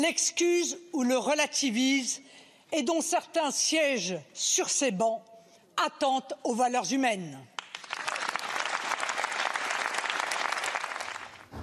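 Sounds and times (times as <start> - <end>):
speech: 0.0 - 8.2
applause from deputies in parliament chamber: 7.6 - 11.6.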